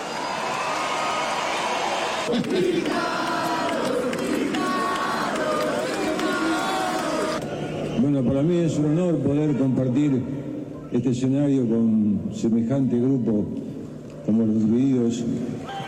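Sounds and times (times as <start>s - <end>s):
audience applause: 0.0s - 7.4s
large audience cheering: 0.0s - 8.4s, 15.6s - 15.8s
speech: 2.3s - 3.2s, 8.2s - 13.6s, 14.3s - 15.7s.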